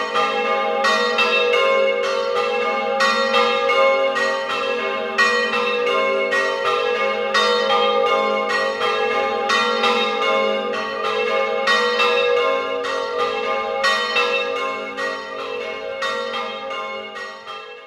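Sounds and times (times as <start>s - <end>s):
bells ringing in Ramuscello: 0.0s - 17.8s.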